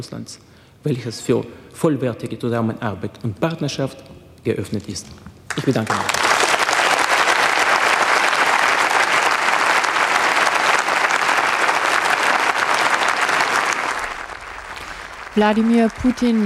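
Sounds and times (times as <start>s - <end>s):
speech: 0.0s - 6.2s, 15.4s - 16.4s
applause from parliament members: 5.5s - 16.4s.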